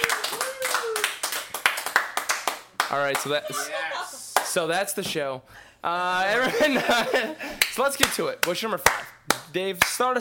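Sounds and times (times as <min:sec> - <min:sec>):
round of applause: 0:00.0 - 0:03.6
speech: 0:02.9 - 0:10.1
laughter: 0:03.2 - 0:04.3, 0:06.3 - 0:07.6.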